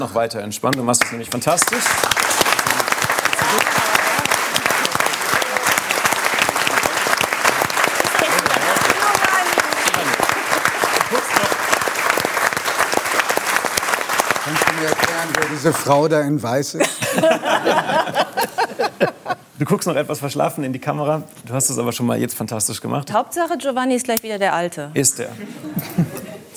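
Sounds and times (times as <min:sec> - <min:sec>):
speech: 0:00.0 - 0:02.3, 0:15.6 - 0:26.2
studio audience applause: 0:01.0 - 0:16.1
laughter: 0:03.3 - 0:11.5, 0:16.8 - 0:19.6, 0:25.4 - 0:26.5.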